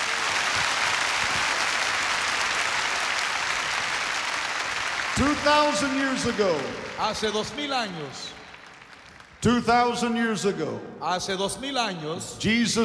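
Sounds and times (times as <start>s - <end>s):
audience applause: 0.0s - 9.4s
speech: 5.2s - 8.4s, 9.4s - 12.8s.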